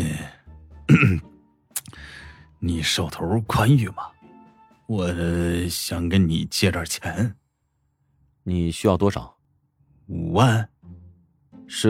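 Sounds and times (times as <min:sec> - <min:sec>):
person performing a throaty cough: 0:00.9 - 0:01.3
speech: 0:00.9 - 0:01.3, 0:02.6 - 0:04.2, 0:04.9 - 0:07.4, 0:08.5 - 0:09.4, 0:10.1 - 0:10.7, 0:11.7 - 0:11.8
faint breathy sound: 0:01.9 - 0:02.6.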